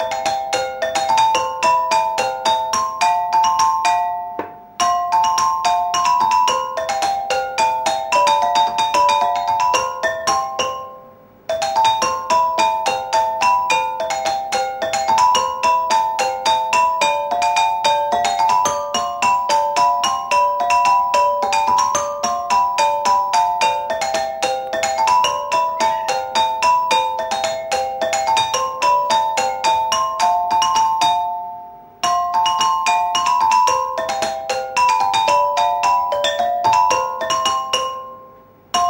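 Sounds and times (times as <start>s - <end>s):
small bells playing a waltz: 0.0s - 38.8s.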